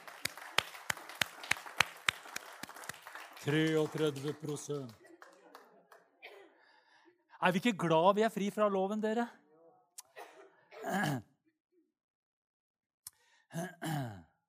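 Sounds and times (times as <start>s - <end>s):
audience clapping in rhythm: 0.0s - 6.2s
speech: 3.4s - 5.0s, 7.4s - 9.4s.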